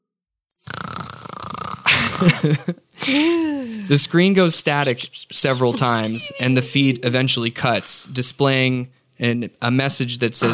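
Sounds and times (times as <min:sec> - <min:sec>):
loud rasping snore: 0:00.6 - 0:02.2
laughter: 0:01.9 - 0:04.0, 0:04.7 - 0:08.1
speech: 0:02.2 - 0:10.5.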